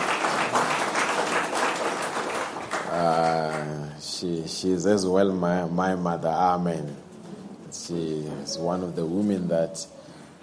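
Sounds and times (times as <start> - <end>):
crowd applause: 0.0 - 3.8
speech: 4.2 - 7.0, 7.9 - 10.0.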